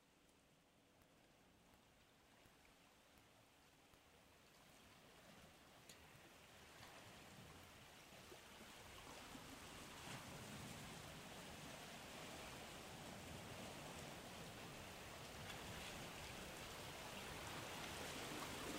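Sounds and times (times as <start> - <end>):
sea waves of Almería washing onto the shore: 6.1 - 18.7.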